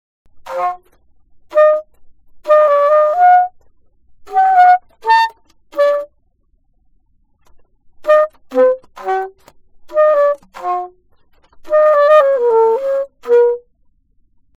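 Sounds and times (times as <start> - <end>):
alto saxophone: 1.5 - 3.6, 4.3 - 6.1, 8.0 - 11.0, 11.6 - 13.7.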